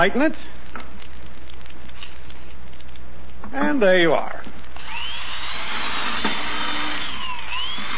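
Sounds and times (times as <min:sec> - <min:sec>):
speech: 0:00.0 - 0:00.6, 0:03.5 - 0:04.6
electric drill boring through a board: 0:04.8 - 0:07.9.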